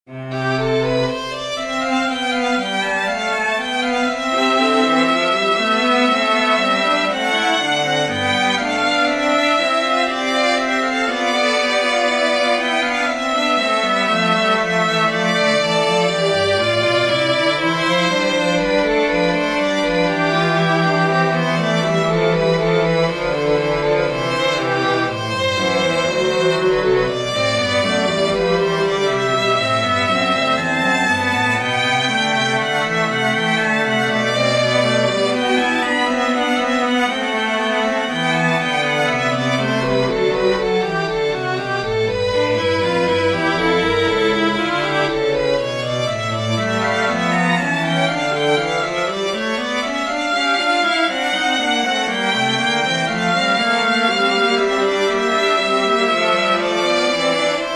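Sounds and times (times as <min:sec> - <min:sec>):
string trio playing a sinfonia in C major: 0:00.0 - 0:57.7.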